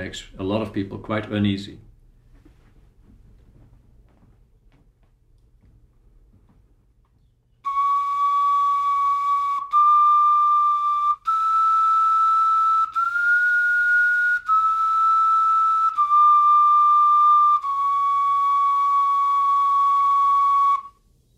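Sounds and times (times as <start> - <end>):
speech: 0.0 - 1.9
replica Neanderthal bone flute playing: 7.6 - 21.2.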